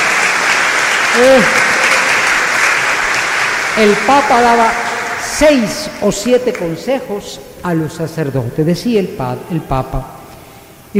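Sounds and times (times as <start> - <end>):
audience applause: 0.0 - 6.7
speech: 1.2 - 1.7, 3.8 - 4.8, 5.4 - 10.2.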